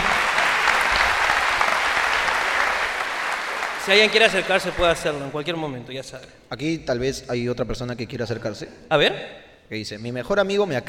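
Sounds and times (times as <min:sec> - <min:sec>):
audience applause: 0:00.0 - 0:05.4
speech: 0:03.9 - 0:10.8.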